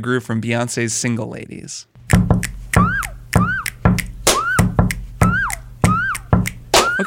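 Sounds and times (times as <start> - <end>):
speech: 0.0 - 1.9
hand clapping: 2.0 - 7.0
knocking and bumping on a desk: 2.2 - 6.6
finger snapping: 2.4 - 7.0.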